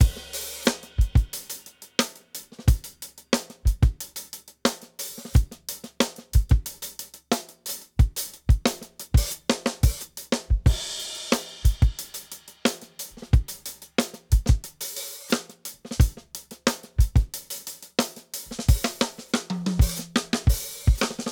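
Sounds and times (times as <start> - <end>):
drums: 0.0 - 21.3.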